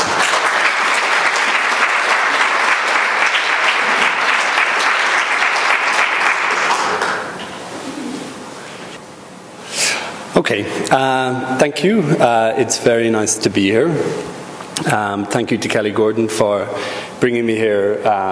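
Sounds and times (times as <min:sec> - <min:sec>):
audience applause: 0:00.0 - 0:07.4
speech: 0:10.5 - 0:18.3.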